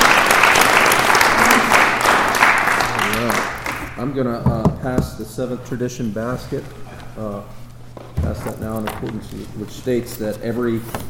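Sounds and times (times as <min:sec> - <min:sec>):
round of applause: 0:00.0 - 0:04.0
speech: 0:04.0 - 0:07.6, 0:08.2 - 0:11.0.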